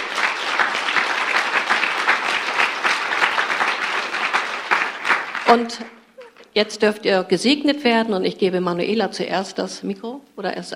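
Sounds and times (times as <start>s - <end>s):
crowd applause for children: 0.0s - 6.4s
speech: 5.5s - 6.0s, 6.6s - 10.7s.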